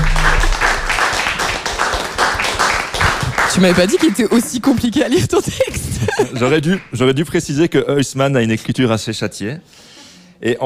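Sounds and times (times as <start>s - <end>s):
applause from a group: 0.0s - 5.3s, 6.4s - 6.9s
speech: 3.6s - 10.6s
laughter: 5.1s - 6.9s.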